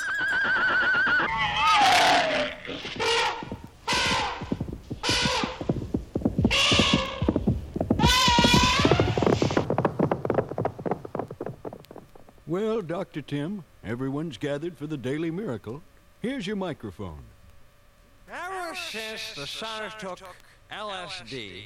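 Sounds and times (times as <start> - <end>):
horses neighing: 0.0 - 9.7
speech: 12.6 - 17.3, 18.9 - 21.6.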